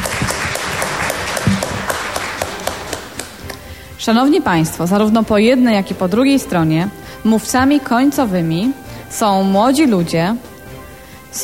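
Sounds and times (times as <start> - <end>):
audience applause: 0.0 - 3.8
speech: 4.0 - 10.5.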